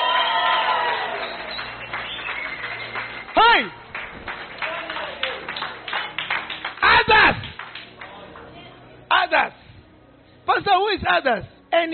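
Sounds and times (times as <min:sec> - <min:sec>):
audience cheering: 0:00.0 - 0:07.4
audience clapping: 0:00.0 - 0:08.6
speech: 0:11.1 - 0:11.9.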